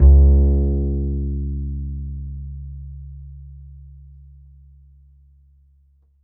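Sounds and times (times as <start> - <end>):
upright acoustic bass A string note: 0.0 - 4.8.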